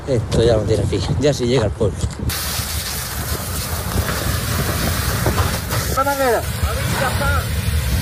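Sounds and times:
speech: 0.1 - 2.7, 6.1 - 7.5
wildfire burning in Los Gallardos, Almería: 2.3 - 7.9.

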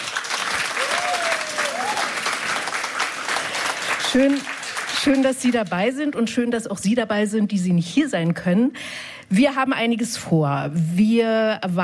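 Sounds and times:
studio audience applause: 0.0 - 5.6
speech: 4.1 - 11.8.

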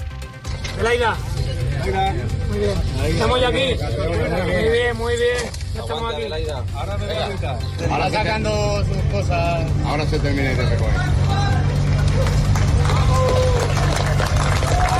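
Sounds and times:
speech: 0.8 - 11.5
applause for rescue workers: 11.8 - 14.9.

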